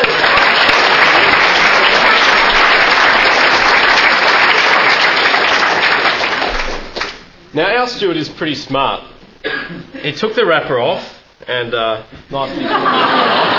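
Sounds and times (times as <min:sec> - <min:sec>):
audience applause: 0:00.0 - 0:07.2, 0:12.8 - 0:13.5
speech: 0:07.8 - 0:13.4
laughter: 0:12.4 - 0:13.5.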